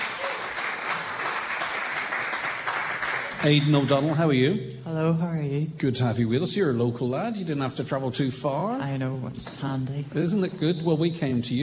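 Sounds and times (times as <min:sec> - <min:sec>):
audience clapping: 0:00.0 - 0:04.1
speech: 0:03.4 - 0:11.6.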